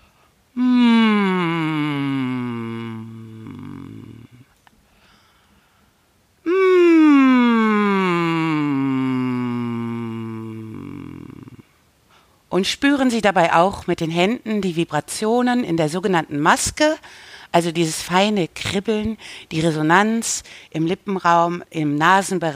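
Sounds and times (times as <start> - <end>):
person humming vocal exercise: 0.6 - 4.5, 6.4 - 11.6
speech: 12.6 - 22.5.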